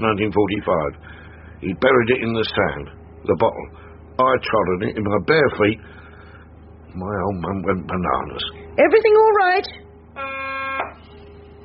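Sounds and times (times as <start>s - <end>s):
speech: 0.0s - 6.0s, 6.9s - 10.4s
harsh steady buzzer tone: 10.2s - 11.6s.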